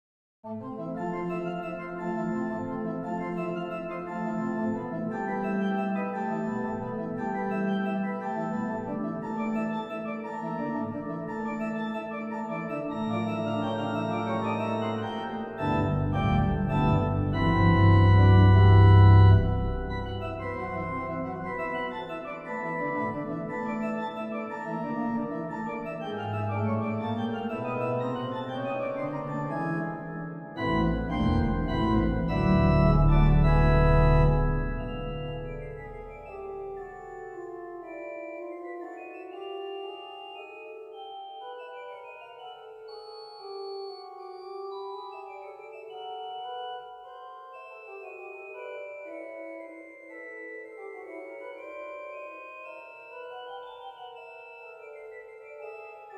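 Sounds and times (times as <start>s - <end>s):
organ: 0.5s - 56.1s.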